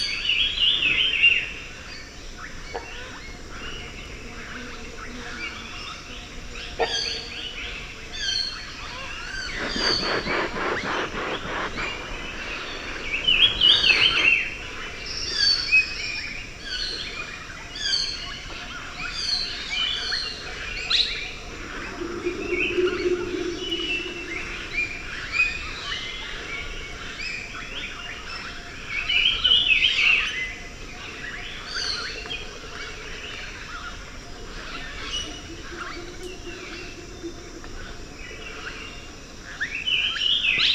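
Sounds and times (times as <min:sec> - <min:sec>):
deep jungle ambience: 0:00.0 - 0:40.7.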